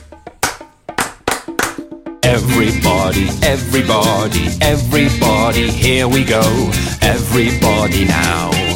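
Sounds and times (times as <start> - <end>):
people clapping along to a children's song: 0.4 - 1.8
speech: 2.4 - 8.6.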